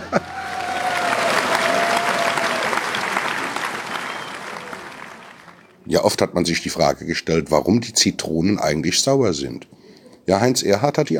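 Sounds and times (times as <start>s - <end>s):
audience applause: 0.0s - 5.7s
speech: 0.1s - 0.5s, 5.9s - 11.1s.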